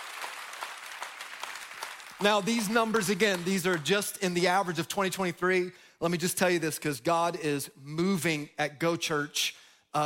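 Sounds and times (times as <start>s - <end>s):
audience clapping: 0.0s - 5.2s
speech: 2.2s - 10.0s.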